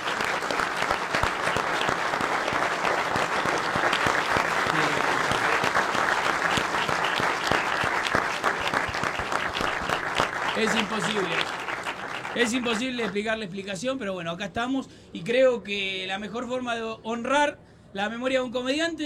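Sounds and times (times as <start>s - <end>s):
audience applause: 0.0s - 13.3s
speech: 10.6s - 11.6s, 12.4s - 19.0s.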